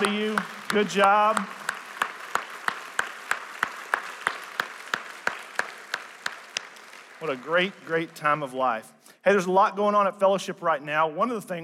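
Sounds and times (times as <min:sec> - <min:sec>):
speech: 0:00.0 - 0:01.6, 0:07.2 - 0:11.6
audience clapping for graduates: 0:00.0 - 0:08.8.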